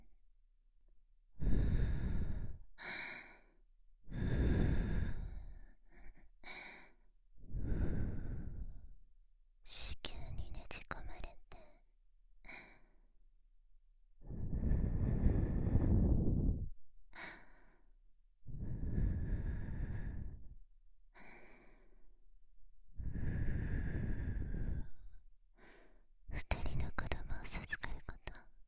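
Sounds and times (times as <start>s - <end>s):
breathing: 1.4s - 8.9s, 12.4s - 13.1s, 14.2s - 17.9s, 18.5s - 22.2s, 23.0s - 26.1s
whispering: 9.7s - 11.8s, 26.3s - 28.6s.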